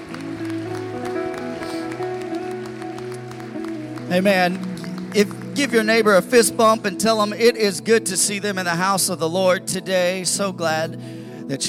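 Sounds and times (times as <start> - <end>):
audience clapping in praise: 0.0 - 7.5
speech: 4.1 - 11.6.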